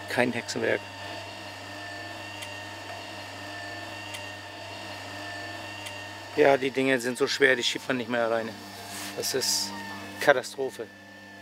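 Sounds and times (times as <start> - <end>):
electric caravan mover motor hum: 0.0 - 11.4
speech: 0.2 - 1.0, 6.4 - 11.0.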